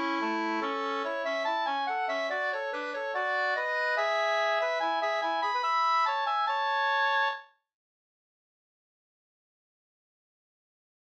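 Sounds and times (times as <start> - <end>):
music in A major: 0.0 - 7.7.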